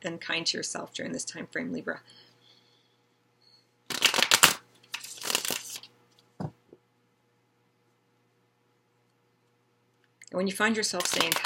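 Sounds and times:
speech: 0.0 - 2.3, 10.4 - 11.4
After Tarot deck cards being shuffled and drawn: 3.9 - 5.9, 11.0 - 11.4.

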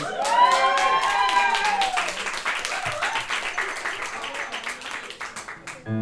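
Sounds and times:
voices cheering: 0.0 - 4.5
crowd applauding: 0.0 - 5.9.

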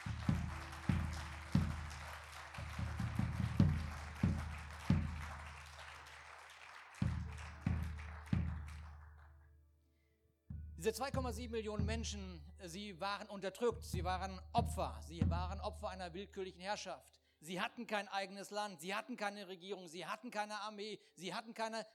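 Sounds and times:
audience applause: 0.0 - 9.4
speech: 10.8 - 21.9.

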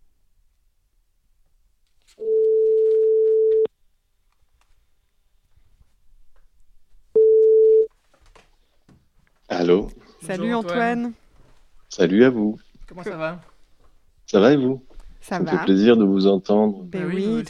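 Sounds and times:
telephone ringback tone: 2.2 - 3.7, 7.2 - 7.9
speech: 9.7 - 11.2, 11.9 - 13.5, 14.3 - 17.4.

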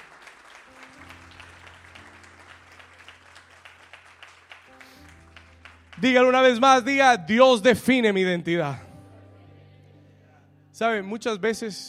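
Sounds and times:
audience applause: 0.0 - 6.6
low sustained organ or keyboard chords: 0.0 - 11.8
speech: 6.0 - 8.9, 10.8 - 11.8.

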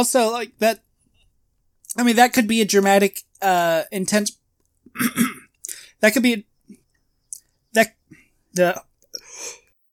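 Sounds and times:
speech: 0.0 - 0.9, 2.0 - 5.3, 6.0 - 6.8, 7.7 - 9.6
person coughing: 4.9 - 5.5.

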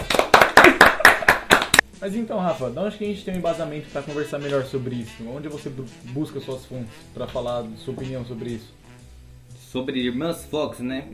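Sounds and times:
audience applause: 0.0 - 1.8
speech: 2.0 - 8.8, 9.7 - 11.1.

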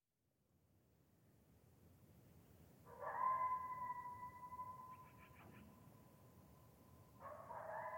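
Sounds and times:
coyote howling: 2.9 - 5.2, 7.2 - 7.9
coyote yipping: 2.9 - 5.8.

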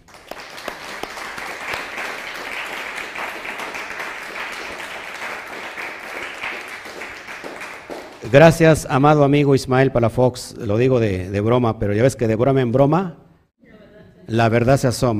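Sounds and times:
audience applause: 0.0 - 8.5
speech: 8.3 - 13.2, 14.3 - 15.1.

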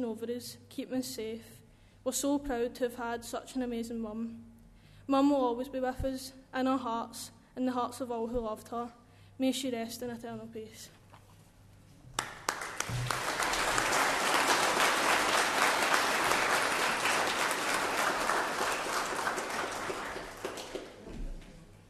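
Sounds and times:
speech: 0.0 - 4.5, 5.1 - 11.0, 12.9 - 13.2
audience applause after a eulogy: 12.2 - 21.2.

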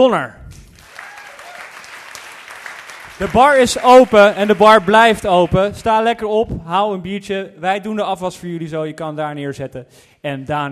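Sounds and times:
speech: 0.0 - 0.4, 3.2 - 10.7
audience applause: 0.7 - 5.8.

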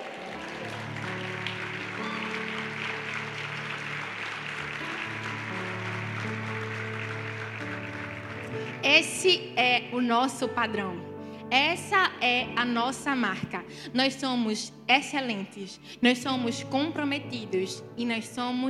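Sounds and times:
audience applause: 0.0 - 8.9
speech: 8.8 - 18.6.

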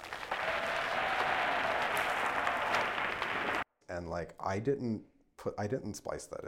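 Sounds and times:
computer-generated applause: 0.0 - 3.6
speech: 4.0 - 6.4.

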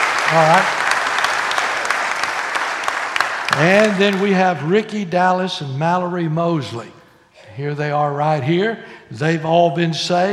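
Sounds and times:
audience applause: 0.0 - 4.5
speech: 0.3 - 0.8, 3.5 - 7.0, 7.6 - 10.3.

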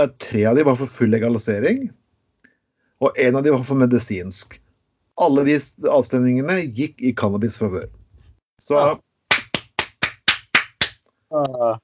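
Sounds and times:
speech: 0.0 - 2.0, 3.0 - 4.6, 5.2 - 8.0, 8.6 - 9.1, 11.3 - 11.8
hand claps from one person: 9.3 - 11.0.

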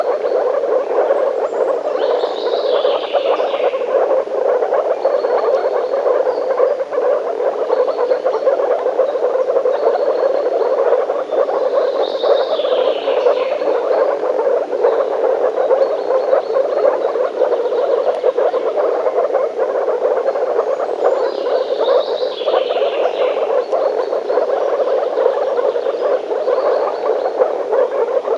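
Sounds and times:
frog chorus croaking: 0.0 - 28.3.

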